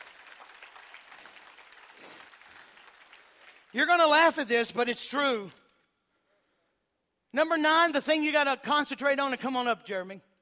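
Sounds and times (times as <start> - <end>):
crowd clapping hands in praise: 0.0 - 4.5
speech: 3.7 - 5.6, 7.3 - 10.3.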